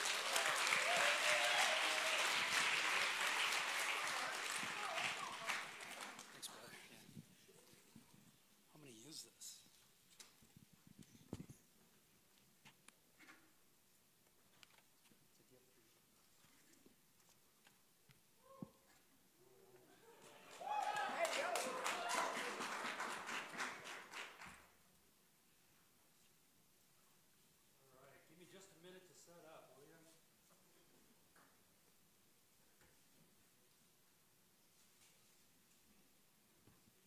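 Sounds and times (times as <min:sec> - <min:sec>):
audience applause welcoming a speaker from Living Waters Ministries: 0:00.0 - 0:06.6, 0:20.0 - 0:24.6.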